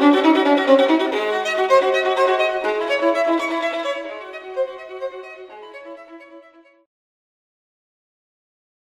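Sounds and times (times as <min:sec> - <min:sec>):
violin: 0:00.0 - 0:06.9.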